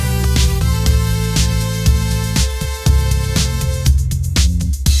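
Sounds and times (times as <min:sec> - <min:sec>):
upbeat pop melody ringtone: 0:00.0 - 0:04.9.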